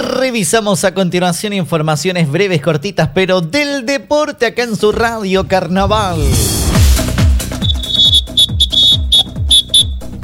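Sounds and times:
speech: 0.2 - 6.6
protest whistle blast: 7.5 - 10.1.

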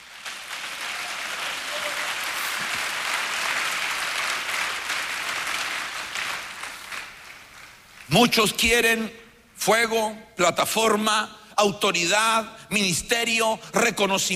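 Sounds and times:
audience applause: 0.0 - 8.0
speech: 8.1 - 14.3.

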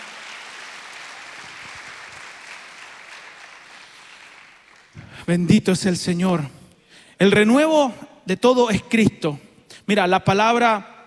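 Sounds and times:
audience applauding: 0.0 - 5.2
speech: 5.2 - 6.6, 7.2 - 10.9.

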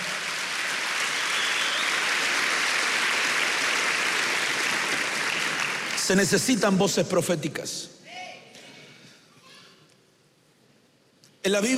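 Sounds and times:
crowd audience clapping: 0.0 - 6.6
speech: 6.1 - 8.0, 11.4 - 11.7.

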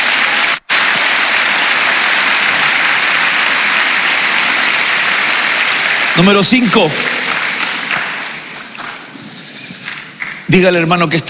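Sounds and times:
audience applauding: 0.0 - 9.0
speech: 6.2 - 7.2, 10.5 - 11.2.

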